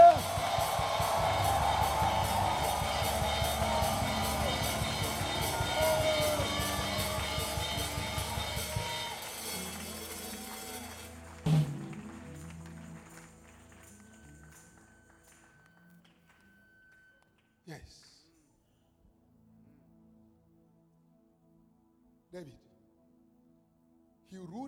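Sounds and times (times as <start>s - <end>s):
church congregation shouting, whooping and cheering: 0.0s - 12.8s.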